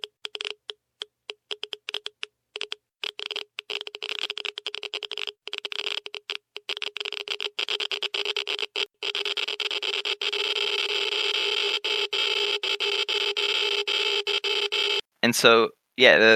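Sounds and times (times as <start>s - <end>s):
Geiger counter clicking: 0.0s - 15.1s
speech: 15.2s - 16.3s.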